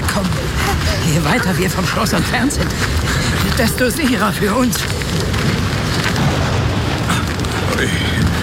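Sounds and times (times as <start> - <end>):
thunderclap from a close lightning strike: 0.0 - 8.4
speech: 1.1 - 5.5, 7.8 - 8.2.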